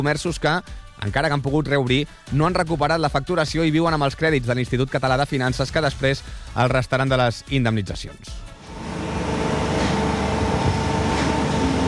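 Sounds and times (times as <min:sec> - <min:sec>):
speech: 0:00.0 - 0:08.5
railway works machinery rumble and hiss under noise-reducing protective covers: 0:08.6 - 0:11.8.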